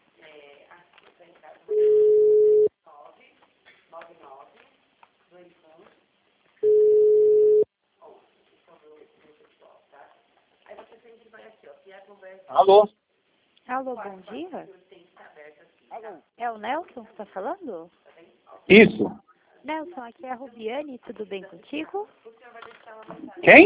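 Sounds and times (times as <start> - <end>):
telephone ringing tone: 1.7 - 2.7, 6.6 - 7.7
speech: 12.6 - 13.0, 13.8 - 14.8, 16.0 - 18.0, 18.7 - 23.6.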